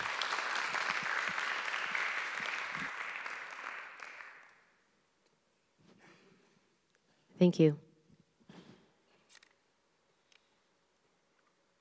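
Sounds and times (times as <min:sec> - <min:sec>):
audience applause: 0:00.0 - 0:04.7
speech: 0:07.4 - 0:07.8.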